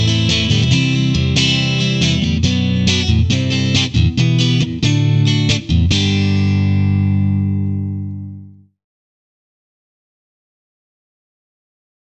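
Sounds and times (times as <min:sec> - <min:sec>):
electric guitar lead playing over a chord progression: 0:00.0 - 0:08.7.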